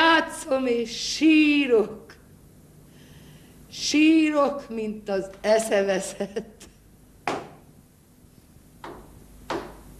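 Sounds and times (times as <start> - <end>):
speech: 0.2 - 2.2, 3.7 - 6.6
knocking on a door: 7.2 - 7.6, 8.8 - 9.9.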